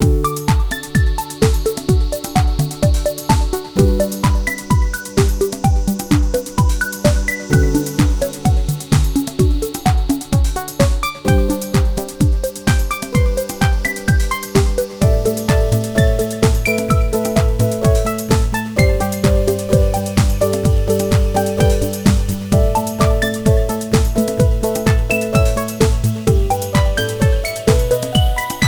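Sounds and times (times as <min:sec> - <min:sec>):
Korg Radias synthesizer beat: 0:00.0 - 0:28.6.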